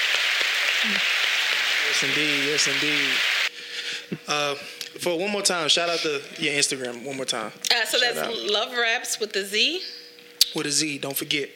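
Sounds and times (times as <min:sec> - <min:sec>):
round of applause: 0:00.0 - 0:03.5
speech: 0:00.8 - 0:01.2, 0:01.8 - 0:03.4, 0:04.1 - 0:11.5.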